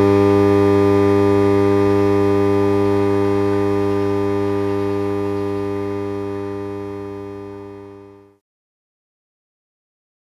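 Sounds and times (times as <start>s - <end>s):
transformer hum: 0.0s - 8.3s.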